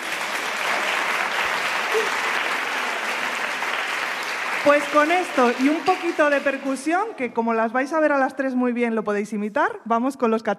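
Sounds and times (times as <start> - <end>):
audience applause: 0.0 - 6.9
speech: 2.0 - 2.2, 4.6 - 10.5.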